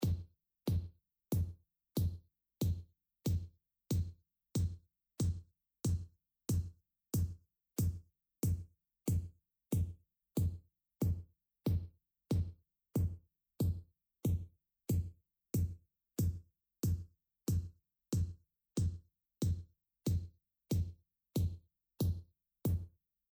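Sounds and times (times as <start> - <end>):
kick drum: 0.0 - 23.0.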